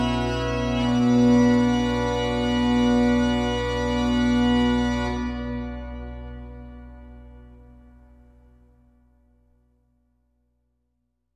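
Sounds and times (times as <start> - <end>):
organ: 0.0 - 8.7.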